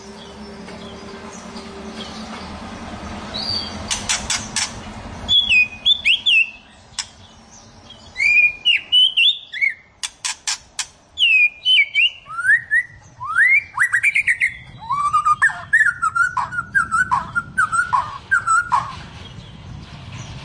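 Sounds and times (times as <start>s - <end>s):
white-rumped shama song of looping whistles, dry ticking and sweeping notes: 5.3s - 19.1s.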